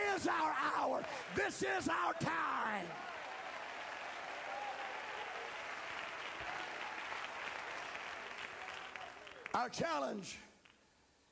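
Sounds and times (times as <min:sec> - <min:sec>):
audience clapping hands: 0:00.0 - 0:10.0
speech: 0:00.2 - 0:03.2, 0:09.5 - 0:10.5.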